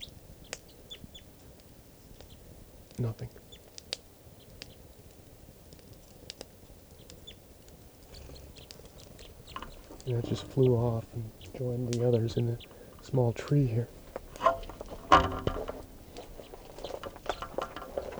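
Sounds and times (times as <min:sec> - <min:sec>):
speech: 0:03.0 - 0:03.5, 0:10.1 - 0:14.0
bird chittering on a net: 0:08.1 - 0:18.1.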